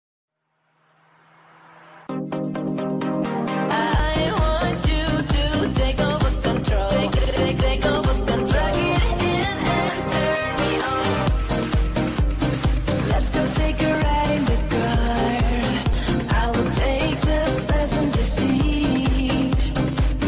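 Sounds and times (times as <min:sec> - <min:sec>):
hip hop music: 0:01.8 - 0:20.2.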